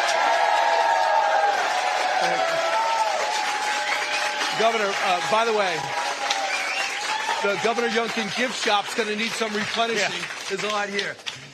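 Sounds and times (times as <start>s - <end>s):
crowd cheering and shouting: 0.0s - 9.2s
crowd clapping: 0.0s - 11.5s
speech: 4.6s - 6.0s, 7.4s - 11.3s.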